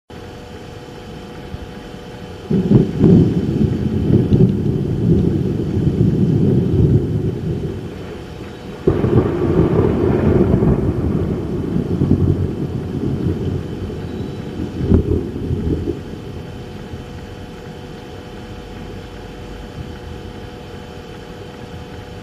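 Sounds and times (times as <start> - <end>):
thunder: 2.5 - 18.2.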